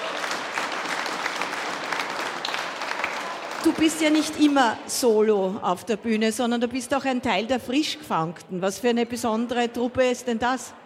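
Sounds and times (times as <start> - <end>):
audience applause: 0.0 - 4.6
speech: 3.6 - 10.8.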